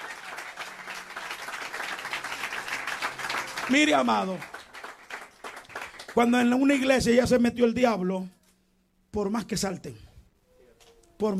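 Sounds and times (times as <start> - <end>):
audience clapping: 0.0 - 6.9
speech: 3.7 - 4.5, 6.2 - 8.4, 9.2 - 10.0, 11.2 - 11.3.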